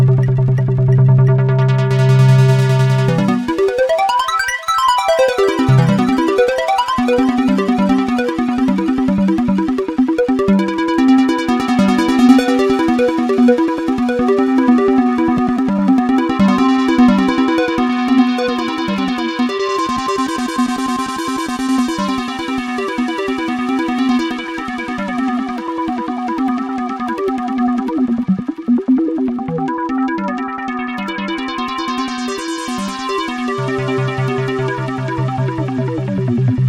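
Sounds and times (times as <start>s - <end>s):
BS3X arpeggiator synthesizer arpeggio: 0.0s - 36.6s.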